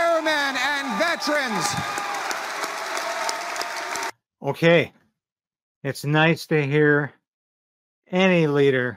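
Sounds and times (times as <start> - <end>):
crowd applause: 0.0 - 4.1
speech: 1.2 - 2.2, 4.4 - 5.0, 5.8 - 7.2, 8.1 - 8.9.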